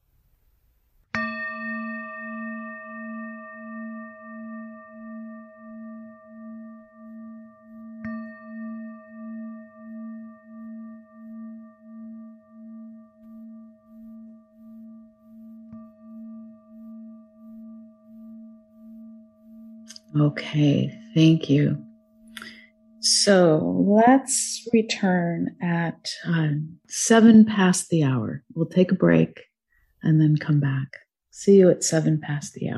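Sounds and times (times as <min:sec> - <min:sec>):
meditation bell ringing: 0:01.1 - 0:23.5
speech: 0:20.1 - 0:21.9, 0:23.1 - 0:32.7.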